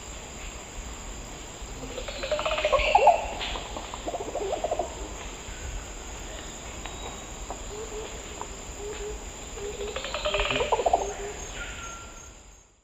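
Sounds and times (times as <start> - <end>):
Psarocolius yuracares song in the Eastern Lowlands of South America: 2.0 - 8.2, 8.9 - 12.7.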